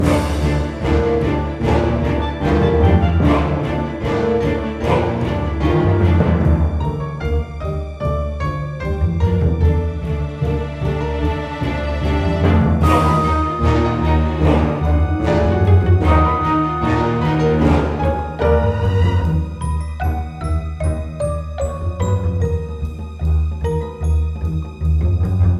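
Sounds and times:
cave music build: 0:00.0 - 0:25.5.

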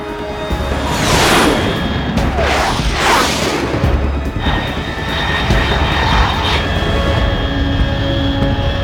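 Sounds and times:
fast unidentified aircraft roaring overhead at 30,000 feet: 0:00.0 - 0:08.8.

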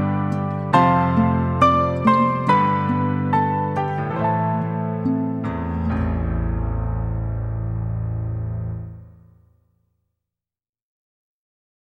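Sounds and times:
piano playing: 0:00.0 - 0:09.3.

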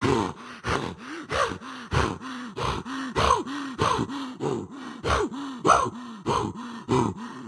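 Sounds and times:
heavy breathing: 0:00.0 - 0:07.4.

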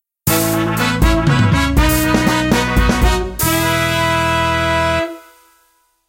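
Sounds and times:
happy jingle: 0:00.3 - 0:04.5.

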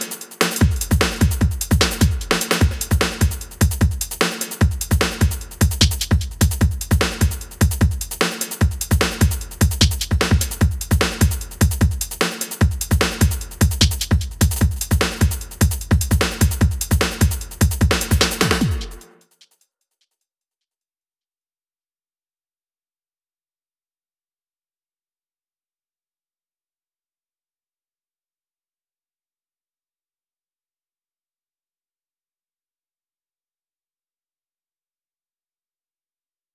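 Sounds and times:
drums: 0:00.0 - 0:19.6.

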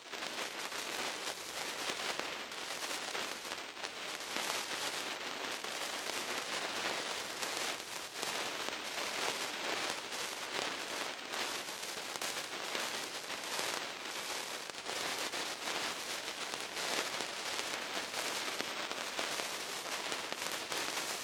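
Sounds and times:
sparks: 0:00.2 - 0:21.2.

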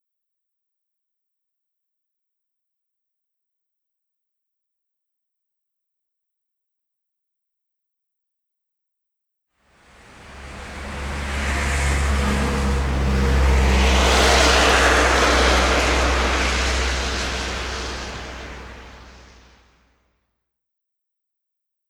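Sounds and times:
Hooverdam truck: 0:09.8 - 0:19.5.

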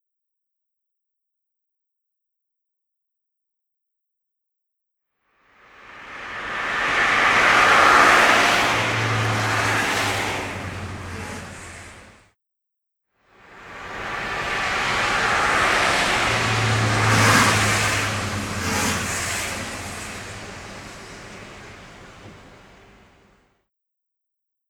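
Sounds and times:
car at the Gateway Arch: 0:05.8 - 0:12.2, 0:13.5 - 0:23.4.

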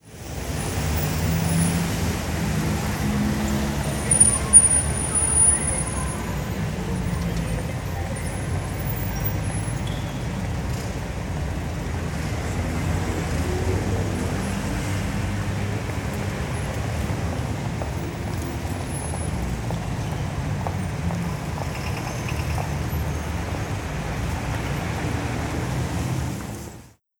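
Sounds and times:
Hong Kong city ambience: 0:00.0 - 0:27.0.

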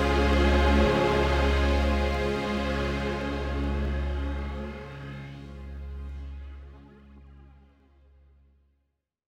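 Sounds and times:
instrumental music: 0:00.0 - 0:06.7.

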